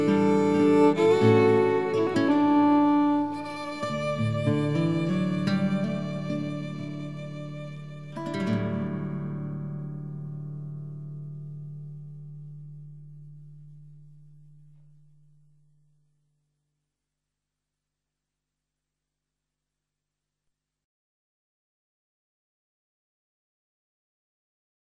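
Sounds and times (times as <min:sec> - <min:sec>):
violin: 0:00.0 - 0:09.6.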